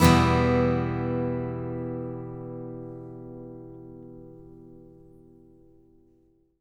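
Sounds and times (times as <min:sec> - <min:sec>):
country acoustic guitar in E minor: 0:00.0 - 0:06.3.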